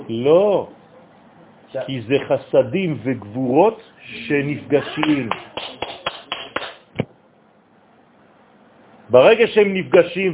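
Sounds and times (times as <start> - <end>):
speech: 0.1 - 0.8, 1.7 - 5.6, 9.1 - 10.3
hand clapping: 5.0 - 7.1.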